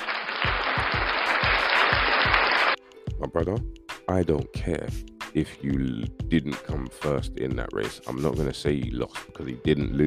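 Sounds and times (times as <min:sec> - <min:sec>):
round of applause: 0:00.0 - 0:02.8
speech: 0:03.4 - 0:10.0.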